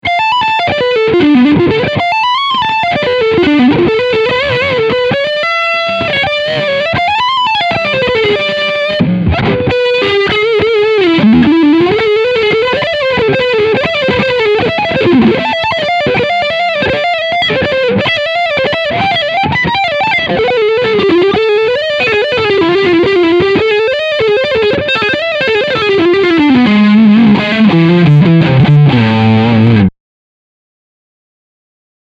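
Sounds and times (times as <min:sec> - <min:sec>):
high gain distortion: 0:00.1 - 0:29.9.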